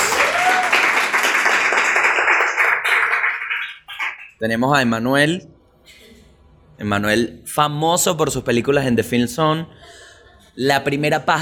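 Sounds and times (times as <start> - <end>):
crowd applause: 0.0 - 4.4
speech: 4.4 - 6.0, 6.8 - 10.0, 10.6 - 11.3.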